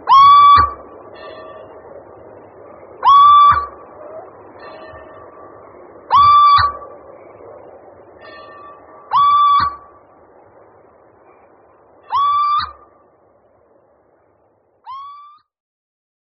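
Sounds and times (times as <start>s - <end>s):
little owl whistled notes: 0.0s - 1.8s, 3.0s - 5.4s, 6.0s - 7.0s, 8.2s - 10.0s, 12.0s - 13.0s, 14.9s - 15.5s.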